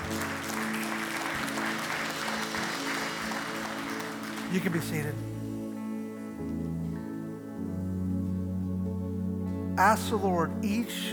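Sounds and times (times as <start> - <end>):
audience applause: 0.0 - 5.6
low sustained musical tone: 4.4 - 11.1
speech: 4.5 - 5.4, 9.8 - 11.1.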